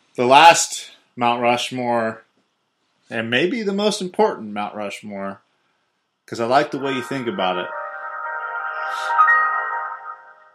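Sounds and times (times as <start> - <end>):
speech: 0.2 - 2.2, 3.1 - 5.4, 6.3 - 7.8
harmonic electronic tone from a phone being reset: 6.6 - 10.5.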